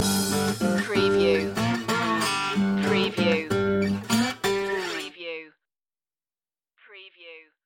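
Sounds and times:
beat loop ending: 0.0 - 3.8.

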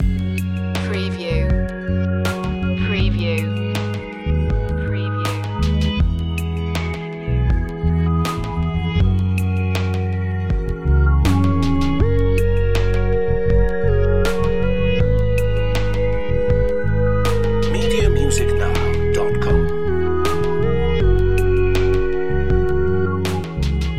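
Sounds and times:
ambient dream loop: 0.0 - 23.9.

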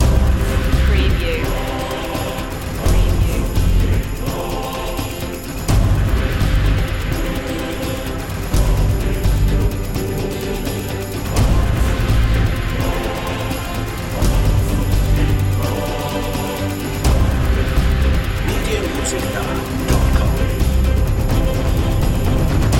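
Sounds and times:
background choir singing: 0.0 - 22.7.

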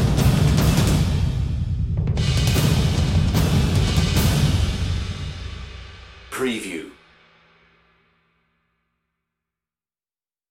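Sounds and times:
percussion: 0.0 - 8.0.

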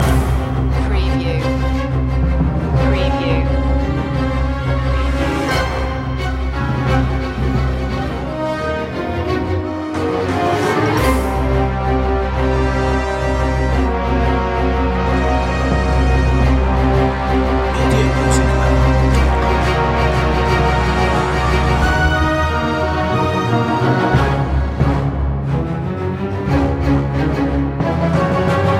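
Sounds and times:
orchestral action music loop: 0.0 - 28.7.

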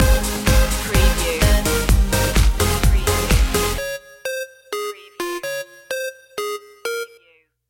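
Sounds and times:
dance stinger: 0.0 - 3.8.

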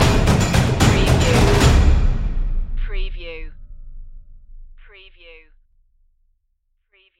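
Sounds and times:
dramatic percussion stinger: 0.0 - 4.9.

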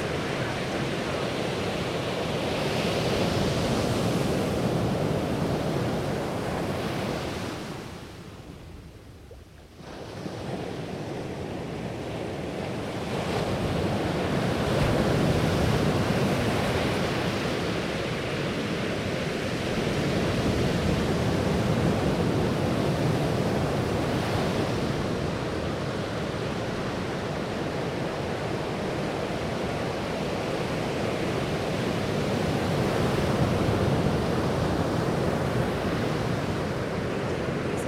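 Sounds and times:
waves crashing: 0.0 - 37.8.

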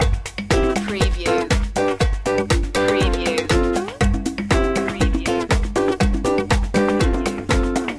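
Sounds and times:
montuno loop: 0.0 - 7.9.

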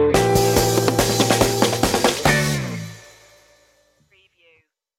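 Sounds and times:
stomp stinger: 0.2 - 3.5.

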